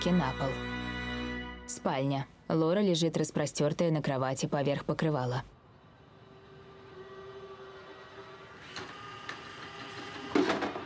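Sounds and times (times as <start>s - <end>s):
speech: 0.0s - 0.7s, 1.8s - 5.6s
small robot vacuum cleaner driving into a room: 6.1s - 10.8s.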